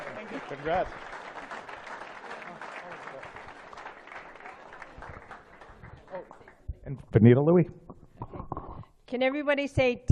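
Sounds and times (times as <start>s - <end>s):
audience applause: 0.0s - 6.6s
speech: 0.3s - 1.1s, 6.1s - 7.8s, 9.1s - 10.1s.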